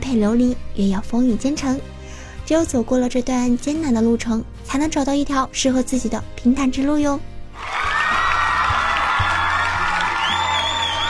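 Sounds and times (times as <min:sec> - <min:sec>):
speech: 0:00.1 - 0:07.7
crowd cheering sound effect: 0:07.6 - 0:11.0.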